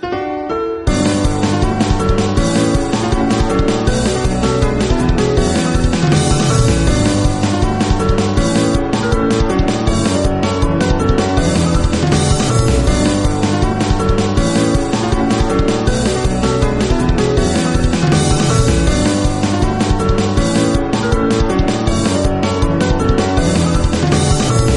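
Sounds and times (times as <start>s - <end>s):
piano sketch: 0.0s - 24.7s.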